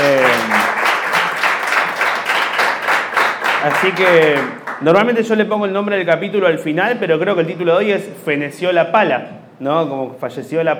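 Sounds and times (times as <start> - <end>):
audience applause: 0.0 - 4.9
speech: 3.6 - 10.7.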